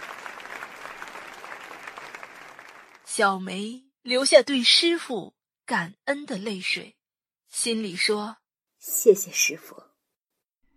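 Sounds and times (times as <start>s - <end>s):
warm applause from a crowd: 0.0s - 3.1s
speech: 3.2s - 9.9s.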